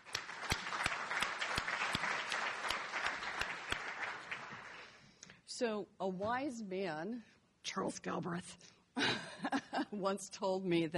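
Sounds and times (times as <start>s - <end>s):
audience applause: 0.0s - 5.0s
speech: 5.6s - 10.9s.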